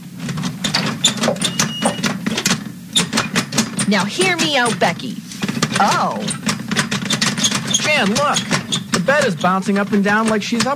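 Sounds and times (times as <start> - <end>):
steady low mechanical hum: 0.0 - 10.7
door being opened with rattling and clicking: 0.2 - 10.7
speech: 3.9 - 5.2, 5.8 - 6.4, 7.9 - 10.7.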